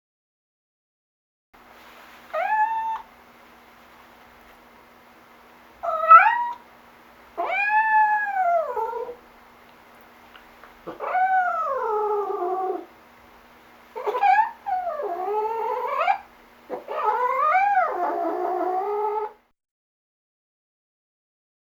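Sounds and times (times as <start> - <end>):
cat meowing in distress: 2.3 - 3.1, 5.8 - 6.6, 7.4 - 9.2, 10.9 - 12.9, 14.0 - 19.4.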